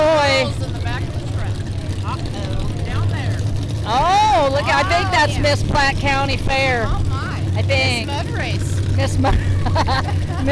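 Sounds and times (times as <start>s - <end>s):
monster truck engine at a county fair mud bash: 0.0s - 10.5s
laughter: 4.1s - 5.6s, 9.0s - 10.5s
speech: 4.6s - 7.0s, 7.6s - 10.5s.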